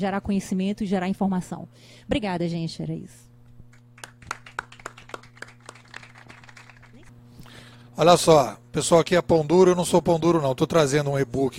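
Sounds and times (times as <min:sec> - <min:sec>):
speech: 0:00.0 - 0:03.3, 0:08.0 - 0:11.5
steady low electrical hum: 0:00.0 - 0:11.5
audience clapping after a talk: 0:03.7 - 0:07.1.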